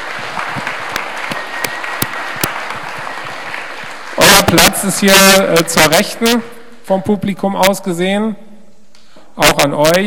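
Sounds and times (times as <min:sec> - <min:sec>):
audience applause: 0:00.0 - 0:05.1
speech: 0:04.5 - 0:08.4, 0:09.4 - 0:10.0.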